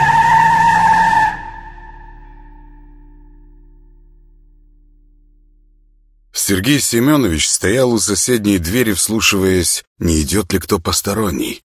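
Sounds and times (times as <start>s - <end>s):
car tires squealing as it speeds off: 0.0s - 2.1s
speech: 6.5s - 11.6s.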